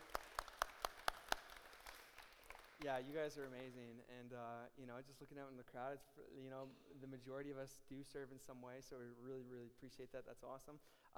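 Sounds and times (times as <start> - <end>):
audience applause: 0.0 - 2.8
speech: 2.8 - 11.1.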